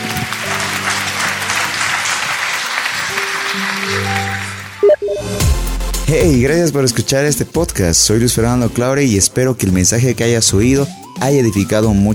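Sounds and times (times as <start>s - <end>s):
audience applause: 0.0s - 4.9s
speech: 6.1s - 12.1s.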